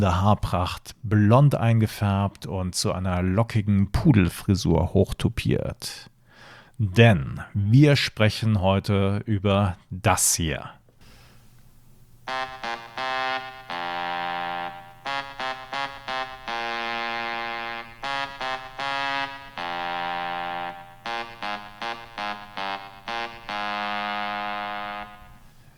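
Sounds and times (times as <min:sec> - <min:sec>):
speech: 0:00.0 - 0:06.1, 0:06.8 - 0:10.8
rock anthem melody played on a phone in buzzy synth-like tones: 0:12.3 - 0:25.4.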